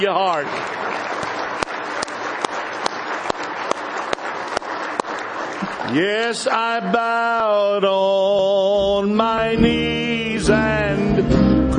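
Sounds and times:
speech: 0:00.0 - 0:01.4, 0:05.9 - 0:11.7
audience hand clapping: 0:00.0 - 0:08.0.

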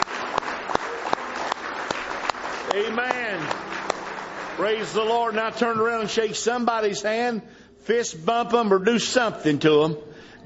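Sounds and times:
church congregation's hand clap of praise: 0:00.0 - 0:06.9
speech: 0:02.7 - 0:03.7, 0:04.6 - 0:10.4.

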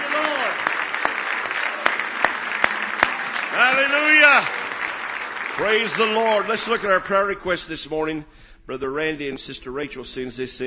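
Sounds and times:
congregation clapping hands in praise during a church service: 0:00.0 - 0:07.8
speech: 0:03.6 - 0:04.6, 0:05.6 - 0:10.6.

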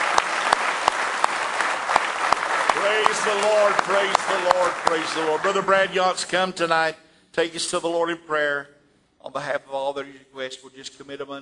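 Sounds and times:
church congregation applauding in praise during a worship service: 0:00.0 - 0:06.6
speech: 0:02.8 - 0:11.4.

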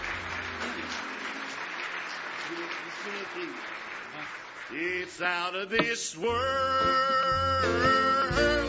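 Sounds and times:
audience clapping: 0:00.0 - 0:06.0
speech: 0:02.5 - 0:08.5.

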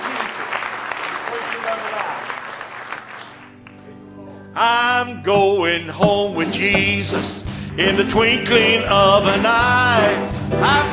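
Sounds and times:
audience clapping: 0:00.0 - 0:03.8
speech: 0:01.6 - 0:02.4, 0:04.6 - 0:10.9.

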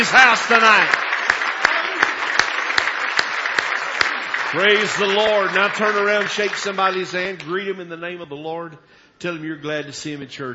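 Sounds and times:
speech: 0:00.0 - 0:01.0, 0:04.5 - 0:10.5
audience applauding: 0:00.0 - 0:07.6.

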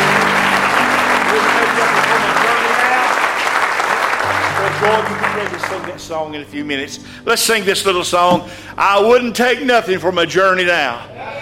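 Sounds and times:
audience clapping hands in praise: 0:00.0 - 0:06.3
speech: 0:04.8 - 0:11.4.

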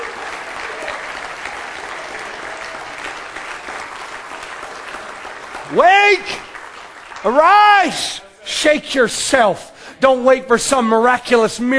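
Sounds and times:
audience clapping hands in praise: 0:00.0 - 0:08.2
speech: 0:05.7 - 0:06.5, 0:07.2 - 0:11.7.

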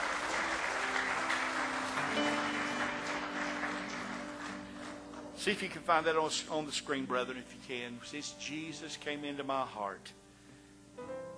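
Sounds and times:
audience clapping hands in praise: 0:00.0 - 0:05.8
faint musical tones: 0:00.0 - 0:11.3
speech: 0:05.4 - 0:10.2.

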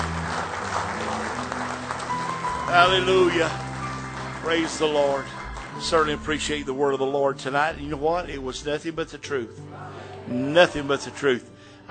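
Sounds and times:
audience hand clapping: 0:00.0 - 0:06.8
speech: 0:02.7 - 0:03.6, 0:04.4 - 0:11.8.

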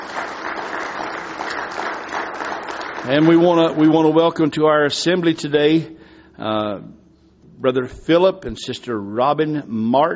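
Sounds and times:
church congregation applause welcoming visiting family members: 0:00.0 - 0:04.5
speech: 0:03.0 - 0:07.0, 0:07.6 - 0:10.1.

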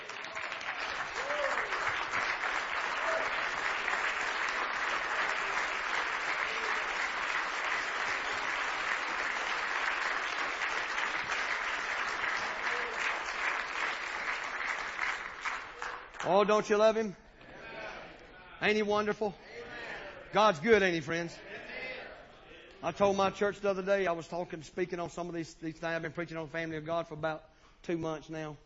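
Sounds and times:
audience applause: 0:00.0 - 0:16.2
speech: 0:16.3 - 0:17.2, 0:18.6 - 0:19.4, 0:20.3 - 0:21.5, 0:22.8 - 0:28.6.

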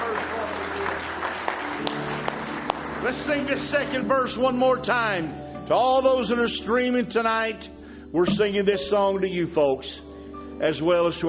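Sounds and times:
congregation hand clap of praise: 0:00.0 - 0:04.6
speech: 0:03.0 - 0:10.0, 0:10.6 - 0:11.2.

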